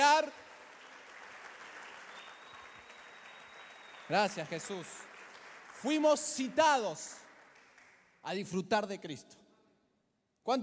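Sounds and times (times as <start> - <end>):
audience applause: 0.0 - 8.0
speech: 4.1 - 5.1, 5.8 - 7.2, 8.2 - 9.4, 10.4 - 10.6.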